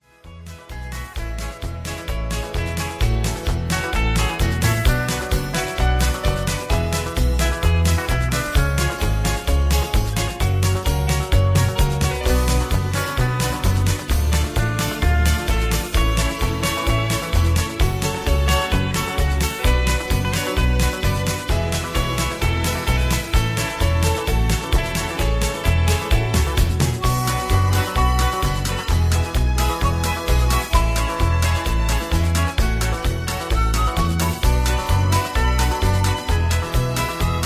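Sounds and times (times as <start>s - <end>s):
instrumental music with less melody: 0.0s - 37.4s.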